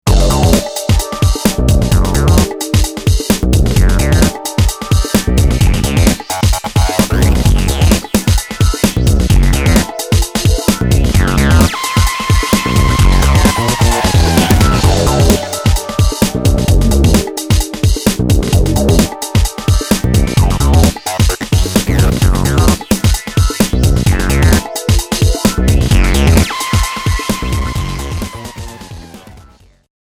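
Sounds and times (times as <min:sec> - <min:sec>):
EMX jazz music: 0:00.0 - 0:29.4.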